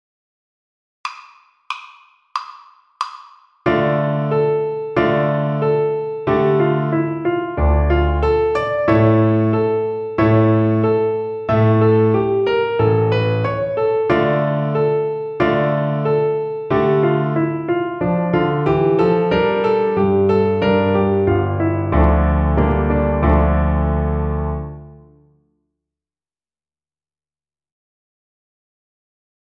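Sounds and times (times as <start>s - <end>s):
piano accompaniment: 3.7s - 25.3s.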